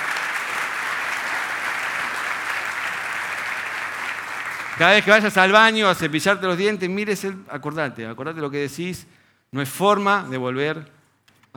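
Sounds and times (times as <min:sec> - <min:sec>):
audience applause: 0:00.0 - 0:06.0
speech: 0:04.8 - 0:11.0.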